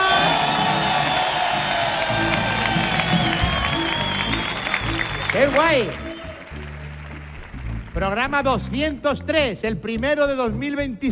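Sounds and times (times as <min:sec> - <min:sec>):
studio audience cheering and applauding at a live show: 0:00.0 - 0:08.4
speech: 0:05.4 - 0:06.0, 0:08.0 - 0:11.0.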